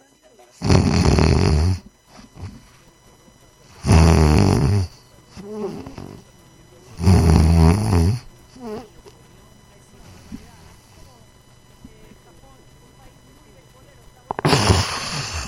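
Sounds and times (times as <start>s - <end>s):
person imitating snoring as in sleep apnea: 0.6s - 2.7s, 3.7s - 6.2s, 6.9s - 8.9s, 14.3s - 15.4s.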